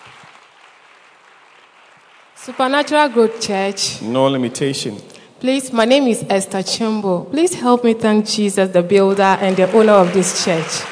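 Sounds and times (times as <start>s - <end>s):
audience clapping: 0.0s - 4.7s, 9.0s - 10.9s
speech: 2.4s - 10.9s.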